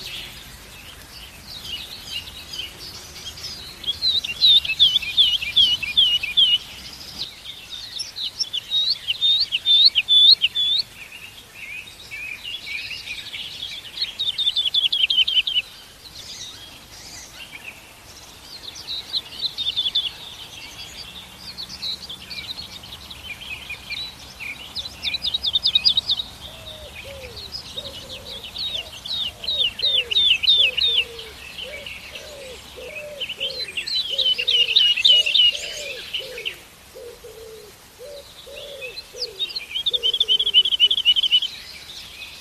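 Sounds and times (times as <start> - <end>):
lark singing: 1.4 - 11.0, 12.6 - 15.8, 18.6 - 42.4
soft cooing: 26.6 - 40.5.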